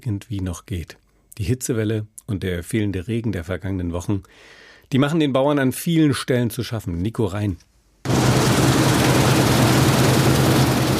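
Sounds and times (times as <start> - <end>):
speech: 0.0 - 8.3
combine harvester engine droning in a field: 8.1 - 10.9.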